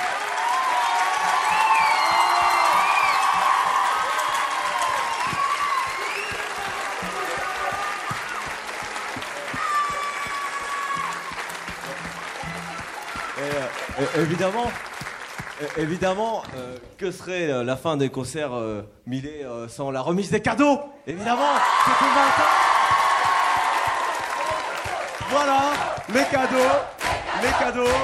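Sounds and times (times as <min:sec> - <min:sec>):
cheers and whoops at a concert: 0:00.0 - 0:11.6, 0:12.3 - 0:14.2, 0:21.3 - 0:26.0
large audience applauding at a concert: 0:00.0 - 0:17.0, 0:21.4 - 0:28.0
speech: 0:14.1 - 0:14.9, 0:15.6 - 0:22.6, 0:25.3 - 0:28.0.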